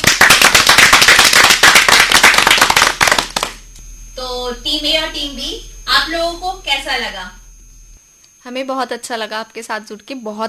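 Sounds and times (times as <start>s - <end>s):
loud applause from a group: 0.0s - 3.6s
speech: 4.5s - 7.4s, 8.4s - 10.4s.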